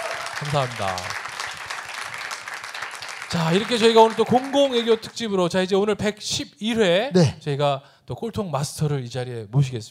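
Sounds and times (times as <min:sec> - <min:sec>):
crowd clapping: 0:00.0 - 0:05.6
speech: 0:00.4 - 0:01.2, 0:03.3 - 0:09.9.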